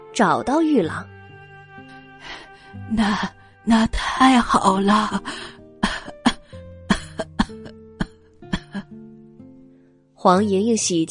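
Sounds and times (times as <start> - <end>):
speech: 0.2 - 1.2, 2.2 - 5.6, 10.2 - 11.0
woman coughing: 5.8 - 8.9.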